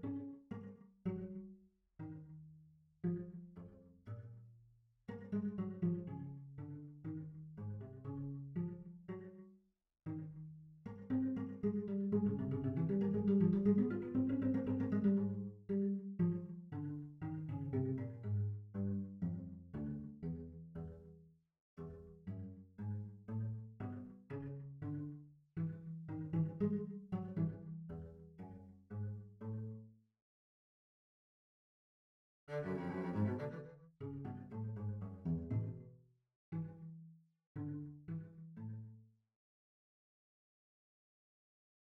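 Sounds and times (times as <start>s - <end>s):
cello: 0.0s - 30.0s, 32.5s - 39.1s.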